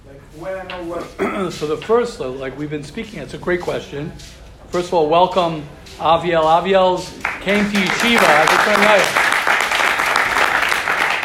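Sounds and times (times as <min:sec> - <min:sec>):
speech: 0:00.3 - 0:09.2
audience clapping: 0:07.1 - 0:11.2.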